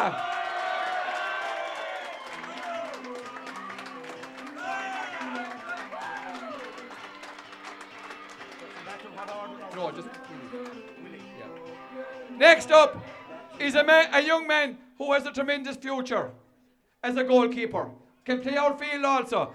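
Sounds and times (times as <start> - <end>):
speech: 0.0 - 0.3, 12.4 - 16.4, 17.0 - 19.5
crowd cheering: 0.0 - 13.9.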